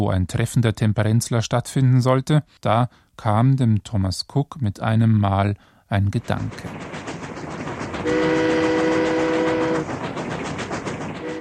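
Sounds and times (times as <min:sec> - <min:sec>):
speech: 0:00.0 - 0:07.1, 0:08.0 - 0:08.5
steam train rumbling along: 0:06.0 - 0:11.3
steam train horn blaring a low chord: 0:08.0 - 0:09.9, 0:11.2 - 0:11.3.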